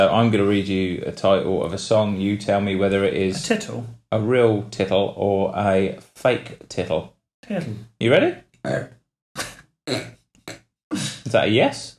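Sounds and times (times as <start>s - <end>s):
speech: 0.0s - 9.0s, 9.9s - 10.2s, 10.9s - 11.9s
person burping: 8.7s - 11.4s.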